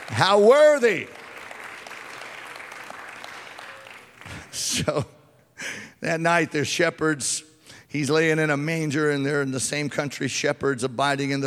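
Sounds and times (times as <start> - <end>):
audience clapping: 0.0 - 4.8
speech: 0.1 - 1.2, 4.6 - 11.4.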